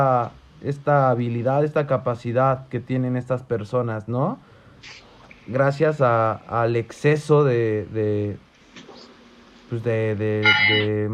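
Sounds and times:
speech: 0:00.0 - 0:08.4, 0:09.7 - 0:11.1
bell ringing: 0:10.4 - 0:11.0.

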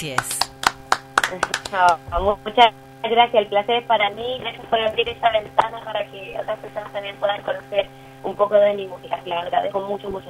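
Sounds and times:
speech: 0:00.0 - 0:00.4, 0:01.3 - 0:10.2
applause: 0:00.0 - 0:02.0.

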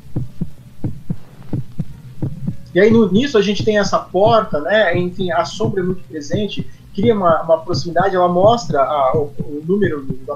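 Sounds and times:
heartbeat in film opening credits: 0:00.0 - 0:10.3
speech: 0:02.8 - 0:10.3.

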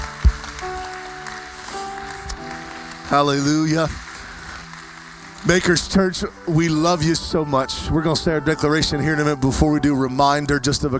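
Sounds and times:
audience clapping hands in praise: 0:00.0 - 0:07.6
speech: 0:03.1 - 0:04.0, 0:05.4 - 0:10.9.

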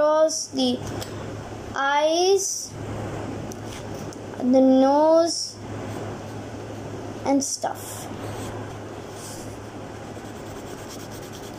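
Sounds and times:
speech: 0:00.3 - 0:01.2, 0:01.8 - 0:03.0, 0:04.4 - 0:05.6, 0:07.2 - 0:08.3
pencil sketching a face on paper: 0:09.2 - 0:11.5.

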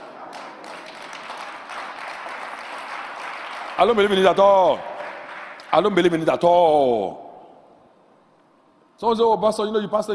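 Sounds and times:
crowd applause: 0:00.0 - 0:05.8
speech: 0:03.8 - 0:04.9, 0:05.7 - 0:07.2, 0:09.0 - 0:10.1.

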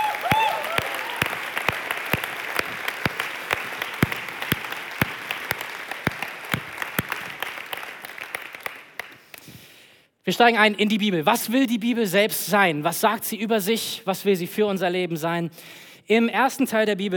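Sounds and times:
audience applause: 0:00.0 - 0:09.4
speech: 0:10.3 - 0:17.1.

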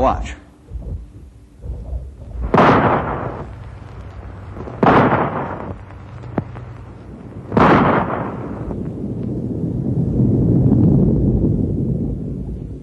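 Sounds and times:
low rumbling background: 0:00.0 - 0:12.8
rifle shots with long rolling echo: 0:02.3 - 0:09.2.

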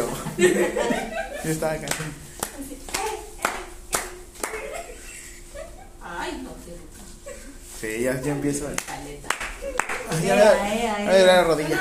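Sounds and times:
laughter: 0:00.0 - 0:01.7, 0:04.5 - 0:06.0
faint steady hum: 0:00.0 - 0:11.8
speech: 0:00.4 - 0:02.2, 0:07.8 - 0:09.0, 0:10.1 - 0:11.8
hand clapping: 0:01.8 - 0:04.9, 0:08.7 - 0:10.2.

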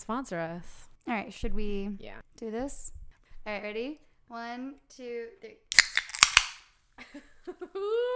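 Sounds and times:
speech: 0:00.0 - 0:05.7, 0:07.0 - 0:08.1
soda cans popping open: 0:05.7 - 0:06.7
laughter: 0:07.0 - 0:08.1.

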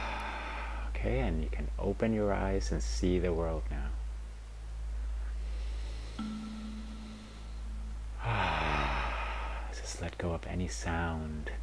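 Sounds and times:
low steady hum: 0:00.0 - 0:11.6
speech: 0:01.0 - 0:04.0, 0:10.0 - 0:11.6
deep breath during a guided relaxation exercise: 0:05.4 - 0:09.8.

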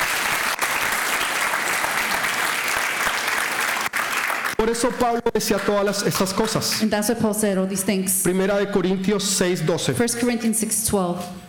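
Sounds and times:
audience applause: 0:00.0 - 0:04.8
speech: 0:04.6 - 0:11.4.

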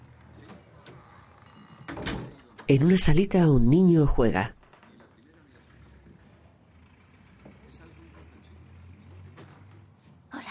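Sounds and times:
door shut by a nervous woman entering a hallway: 0:00.8 - 0:03.2
speech: 0:02.7 - 0:04.6.

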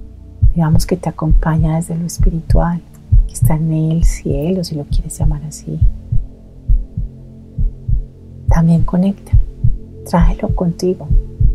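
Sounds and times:
heartbeat: 0:00.4 - 0:11.5
speech: 0:00.6 - 0:06.0, 0:08.6 - 0:09.4, 0:10.1 - 0:11.2.

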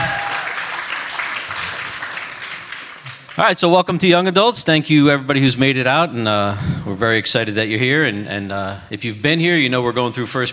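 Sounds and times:
audience clapping: 0:00.0 - 0:03.8
speech: 0:03.4 - 0:10.5.

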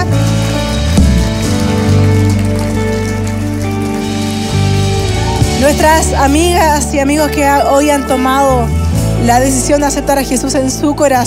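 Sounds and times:
church audience applauding: 0:00.0 - 0:07.0
speech: 0:05.7 - 0:11.2.

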